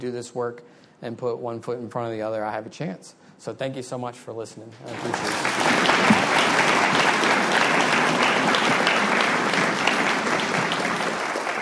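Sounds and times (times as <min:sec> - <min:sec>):
speech: 0:00.0 - 0:06.2
audience applause: 0:04.9 - 0:11.6.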